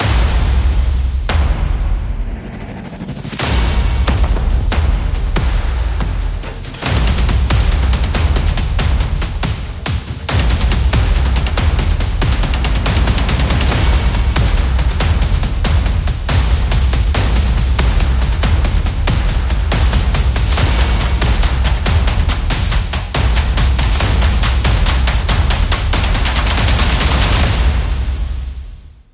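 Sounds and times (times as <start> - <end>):
percussion: 0.0 - 29.1.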